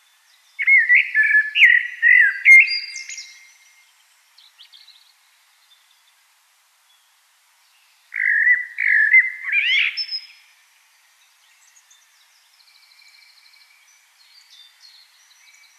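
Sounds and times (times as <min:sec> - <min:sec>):
common blackbird song: 0:00.3 - 0:03.8, 0:08.1 - 0:10.5, 0:11.4 - 0:15.7.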